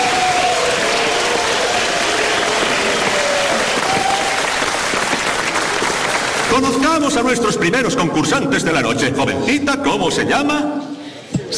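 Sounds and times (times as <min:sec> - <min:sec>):
faint cheering: 0:00.0 - 0:06.2
audience applause: 0:00.0 - 0:07.3
speech: 0:06.6 - 0:10.9.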